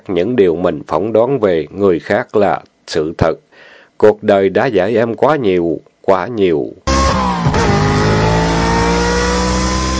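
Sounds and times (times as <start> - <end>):
speech: 0.0 - 7.2
Honda motorbike engine coming up from behind: 6.9 - 9.9.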